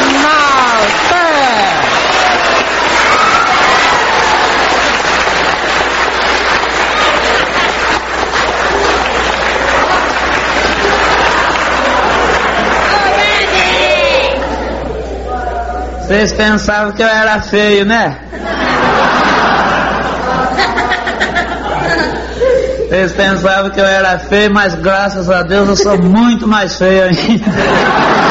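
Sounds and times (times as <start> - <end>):
crowd cheering and shouting: 0.0 - 5.3, 6.4 - 15.0
large crowd applauding: 0.0 - 14.8, 27.6 - 28.2
laughter: 6.4 - 13.8, 18.3 - 23.0, 25.5 - 26.3, 27.0 - 28.2
speech: 16.1 - 18.6, 22.9 - 28.2.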